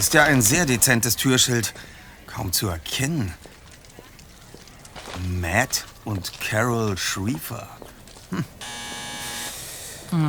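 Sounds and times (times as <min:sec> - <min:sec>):
speech: 0:00.0 - 0:03.4, 0:05.2 - 0:08.9
doorbell buzzer ringing: 0:08.6 - 0:09.7.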